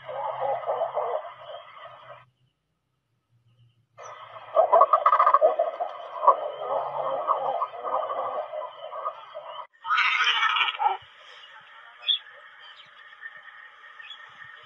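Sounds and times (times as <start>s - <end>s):
cormorants croaking and squawking: 0.0s - 2.2s, 4.0s - 11.4s.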